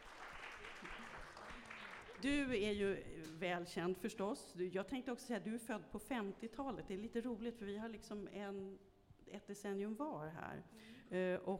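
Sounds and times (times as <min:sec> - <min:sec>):
audience applause: 0:00.0 - 0:02.2
speech: 0:02.2 - 0:11.5.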